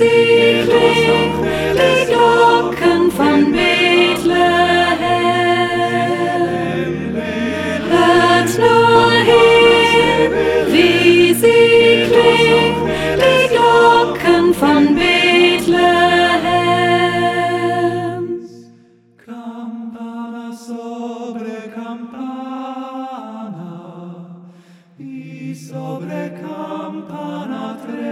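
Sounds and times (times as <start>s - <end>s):
soprano voice: 0.0s - 18.6s.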